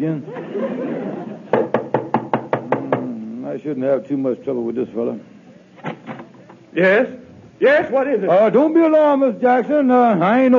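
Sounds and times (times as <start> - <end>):
speech: 0.0 - 0.8, 3.6 - 5.9, 6.8 - 10.5
laughter: 0.2 - 1.7
knocking on a door: 1.5 - 3.2.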